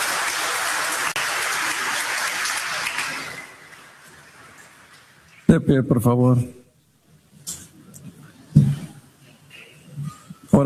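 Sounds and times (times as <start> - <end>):
crowd applauding: 0.0 - 5.2
speech: 5.6 - 6.6.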